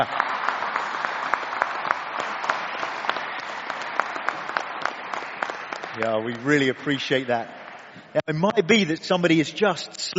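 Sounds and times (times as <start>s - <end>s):
speech: 0.0s - 0.2s, 6.0s - 10.1s
audience round of applause: 0.0s - 7.8s.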